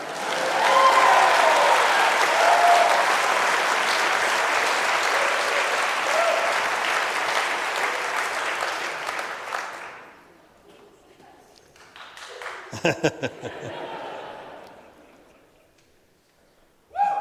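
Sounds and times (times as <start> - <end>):
audience clapping: 0.0 - 10.3, 11.6 - 14.9
laughter: 12.7 - 15.9.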